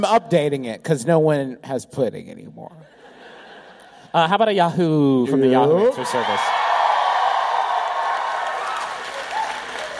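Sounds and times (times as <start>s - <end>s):
speech: 0.0s - 3.0s, 4.1s - 6.6s
live audience cheering and applauding: 5.8s - 9.9s
whoops from the audience: 6.2s - 9.9s.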